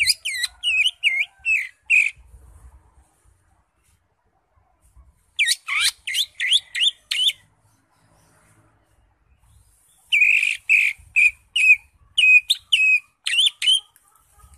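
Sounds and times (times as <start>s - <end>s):
Greater Green Leafbird singing varied phrases: 0.0s - 2.2s, 5.3s - 7.5s, 9.3s - 14.0s.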